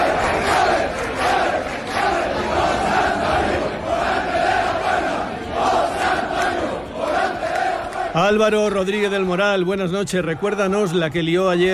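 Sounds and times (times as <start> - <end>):
crowd chanting: 0.0 - 8.8
crowd celebrating in city streets: 0.0 - 11.7
speech: 8.2 - 11.7.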